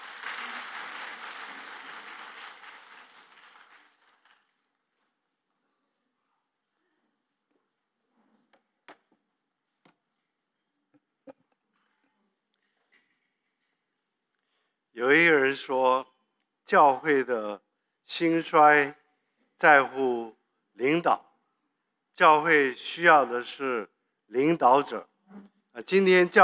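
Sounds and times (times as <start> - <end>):
audience applause: 0.0 - 4.7
speech: 15.0 - 16.1, 16.7 - 19.0, 19.6 - 21.2, 22.2 - 26.4.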